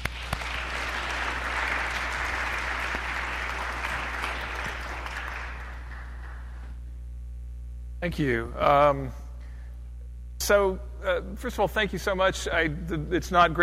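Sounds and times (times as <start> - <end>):
audience applause welcoming a speaker to a book talk: 0.0 - 6.7
low steady hum: 0.0 - 13.6
speech: 8.0 - 9.2, 10.4 - 13.6.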